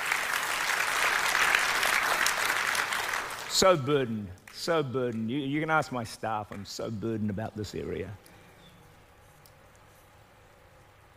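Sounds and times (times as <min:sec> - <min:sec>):
audience clapping: 0:00.0 - 0:05.5
speech: 0:03.6 - 0:08.3.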